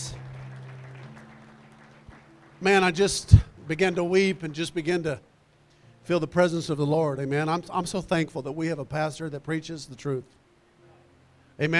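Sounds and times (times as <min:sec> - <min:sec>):
audience hand clapping: 0:00.0 - 0:04.2
speech: 0:02.6 - 0:05.3, 0:06.0 - 0:10.4, 0:11.6 - 0:11.7.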